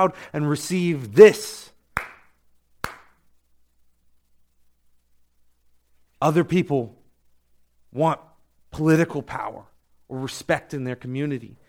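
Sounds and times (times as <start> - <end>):
speech: 0.0 - 1.7, 6.2 - 7.0, 7.9 - 11.6
sharp isolated hand claps: 2.0 - 3.2.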